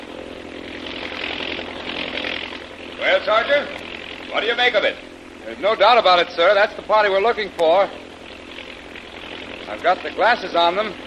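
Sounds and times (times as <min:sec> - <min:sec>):
army plane flying overhead, radio drama effect: 0:00.0 - 0:11.0
speech: 0:03.0 - 0:08.0, 0:09.7 - 0:11.0.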